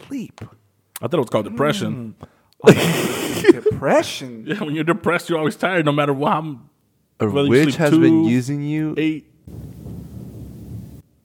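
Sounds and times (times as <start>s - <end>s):
speech: 0.1s - 9.7s
laughter: 2.6s - 4.0s
thunder: 9.5s - 11.0s.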